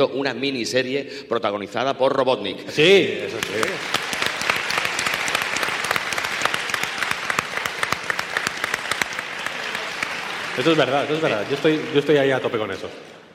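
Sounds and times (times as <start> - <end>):
speech: 0.0 - 4.1, 10.6 - 13.2
loud crowd applause: 2.8 - 13.3.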